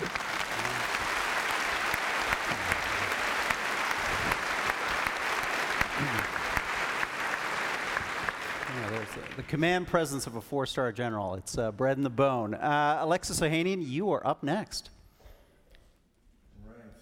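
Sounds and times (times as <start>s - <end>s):
applause from a large audience: 0.0s - 9.8s
speech: 9.5s - 15.0s.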